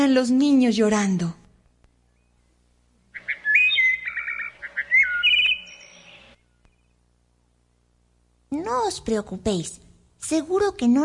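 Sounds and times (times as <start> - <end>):
speech: 0.1 - 1.4, 8.6 - 11.0
small birds chirping: 2.1 - 7.0.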